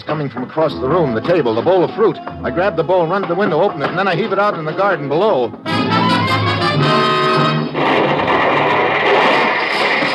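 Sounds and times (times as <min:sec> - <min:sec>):
speech: 0:00.0 - 0:06.1
explosion: 0:06.8 - 0:10.1.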